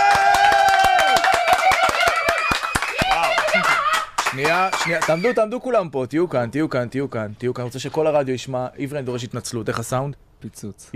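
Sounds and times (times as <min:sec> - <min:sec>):
audience applause: 0:00.0 - 0:05.4
faint cheers: 0:00.0 - 0:05.5
speech: 0:04.4 - 0:10.9.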